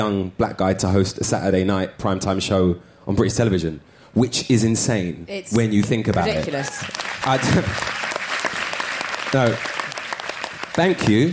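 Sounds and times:
speech: 0:00.0 - 0:08.0, 0:09.3 - 0:09.7, 0:10.8 - 0:11.3
audience applause: 0:05.8 - 0:11.3.

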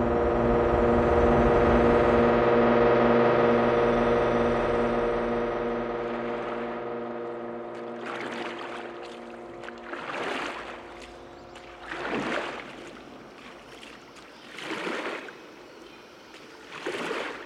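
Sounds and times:
low humming: 0:00.0 - 0:17.4
oars rowing a boat across water: 0:06.0 - 0:17.4.

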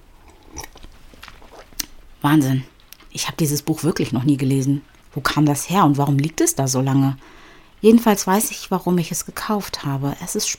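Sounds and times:
person taking a sip of cold tea: 0:00.1 - 0:01.9
speech: 0:02.2 - 0:10.5.

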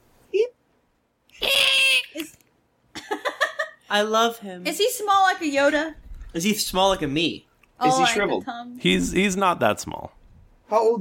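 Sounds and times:
voice imitating a creature's screech: 0:01.4 - 0:02.3
speech: 0:03.9 - 0:10.9.

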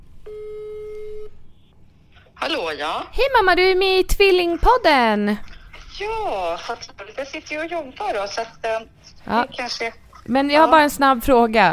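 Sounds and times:
low hum: 0:00.0 - 0:11.7
electronic telephone call tone: 0:00.3 - 0:01.4
speech: 0:02.4 - 0:11.7.

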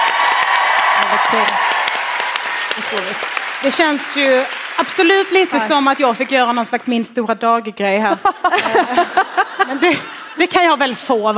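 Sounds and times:
audience applause: 0:00.0 - 0:06.6
speech: 0:01.1 - 0:01.8, 0:02.8 - 0:11.3
laughter: 0:08.0 - 0:10.8.

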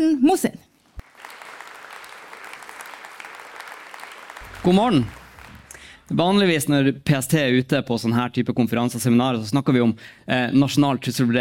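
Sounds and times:
speech: 0:00.0 - 0:00.7, 0:04.6 - 0:05.2, 0:06.1 - 0:11.3
audience applause: 0:01.0 - 0:06.2.

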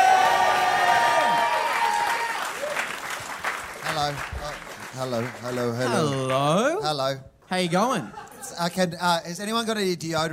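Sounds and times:
audience applause: 0:00.0 - 0:06.6
speech: 0:04.1 - 0:04.3, 0:05.0 - 0:10.3.

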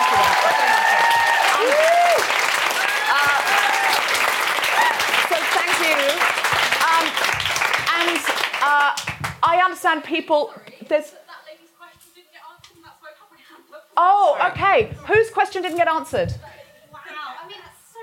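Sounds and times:
voices and whoops: 0:00.0 - 0:05.2
audience applause at a live event: 0:00.0 - 0:09.4
speech: 0:09.7 - 0:11.2, 0:14.0 - 0:16.5.

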